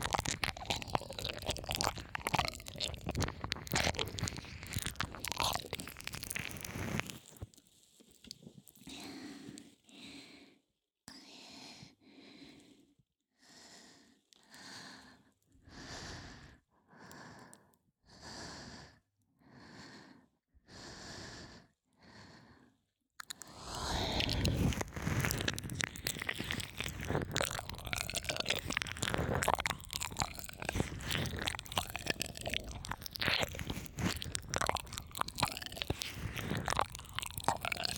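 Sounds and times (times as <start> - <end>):
ear licking in right ear: 0.0 - 7.5, 23.2 - 37.9.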